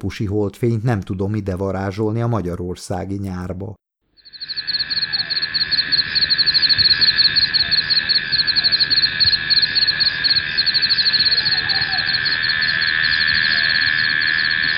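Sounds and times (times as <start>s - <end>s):
speech: 0.0s - 3.8s
crickets chirping at night: 4.2s - 14.7s.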